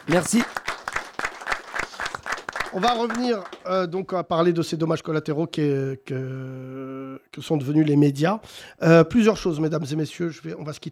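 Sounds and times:
audience applause: 0:00.0 - 0:03.7
speech: 0:00.1 - 0:00.6, 0:02.7 - 0:10.8.

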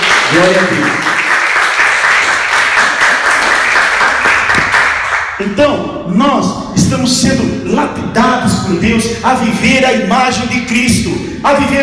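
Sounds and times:
audience applause: 0:00.0 - 0:05.3
speech: 0:00.3 - 0:01.1, 0:05.4 - 0:11.8.

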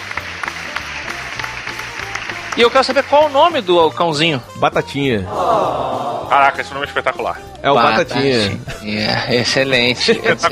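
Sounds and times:
round of applause: 0:00.0 - 0:03.8
speech: 0:02.6 - 0:10.5
laughter: 0:05.3 - 0:06.7, 0:08.1 - 0:10.5.

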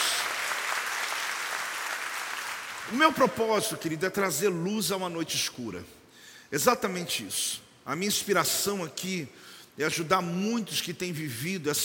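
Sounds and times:
audience applause: 0:00.0 - 0:02.9
speech: 0:02.9 - 0:11.8.

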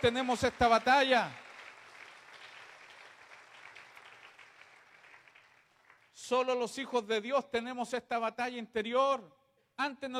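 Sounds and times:
speech: 0:00.0 - 0:01.4, 0:06.3 - 0:10.1
audience applause: 0:00.0 - 0:06.2.

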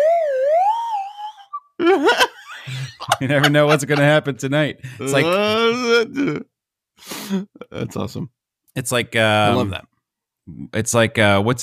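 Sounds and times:
voice imitating a slide whistle: 0:00.0 - 0:01.8
laughter: 0:01.8 - 0:04.3
speech: 0:01.8 - 0:09.9, 0:10.5 - 0:11.6.

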